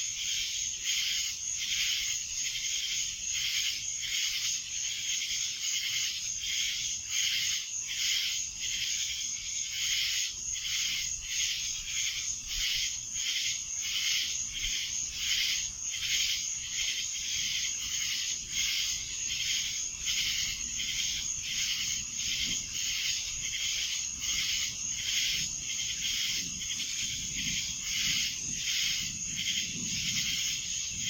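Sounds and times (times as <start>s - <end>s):
cicadas in a dense droning chorus in Annapolis in July: 0.0s - 31.0s.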